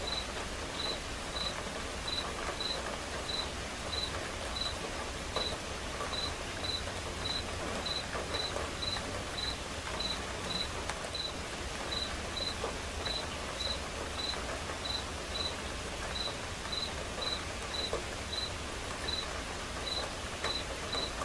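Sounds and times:
quiet rain: 0.0s - 21.2s
cricket chirping: 0.1s - 1.5s, 2.1s - 4.7s, 6.1s - 11.3s, 11.9s - 15.6s, 16.2s - 18.5s, 19.1s - 19.3s, 19.9s - 21.1s.

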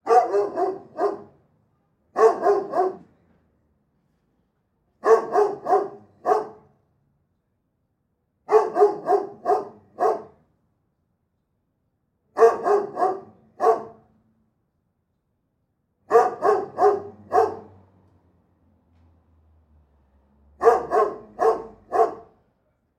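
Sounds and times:
large dog barking: 0.0s - 1.4s, 2.1s - 3.2s, 5.0s - 6.8s, 8.5s - 10.5s, 12.3s - 14.1s, 16.1s - 17.8s, 20.6s - 22.4s.

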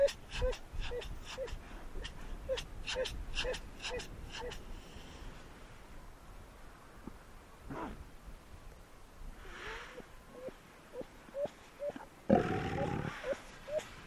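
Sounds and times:
fur seals yelping while fighting: 0.0s - 4.6s, 10.3s - 14.0s.

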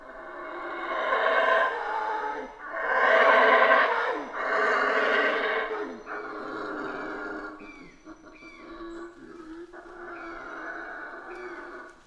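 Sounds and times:
Colombian red howler monkey roaring: 0.0s - 7.9s, 8.5s - 12.0s.

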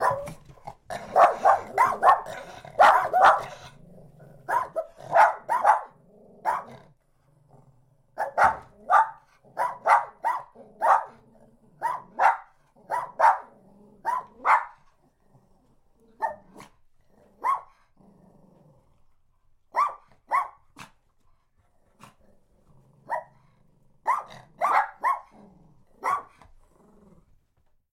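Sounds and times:
dogs barking: 0.0s - 3.7s, 4.4s - 6.8s, 8.2s - 11.2s, 11.8s - 14.8s, 17.4s - 17.8s, 19.8s - 20.6s, 24.1s - 25.4s, 26.0s - 26.4s.

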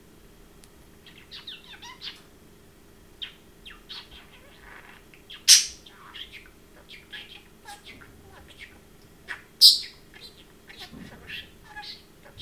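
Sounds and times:
parrot chirping and warbling: 1.1s - 2.2s, 3.2s - 12.4s.

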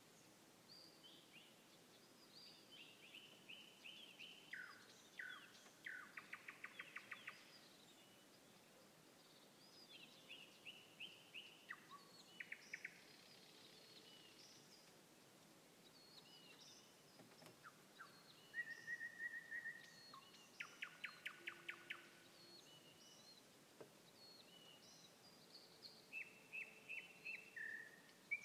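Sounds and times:
nightingale song: 2.5s - 7.6s, 9.9s - 14.6s, 17.6s - 23.4s, 26.1s - 28.4s.

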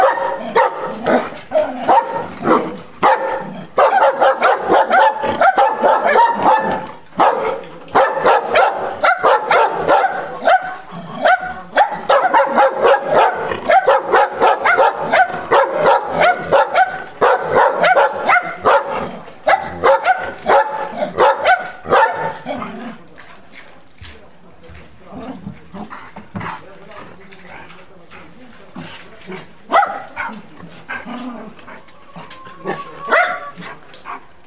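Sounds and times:
dog barking angrily: 0.0s - 22.5s, 29.7s - 30.4s, 33.0s - 34.2s.

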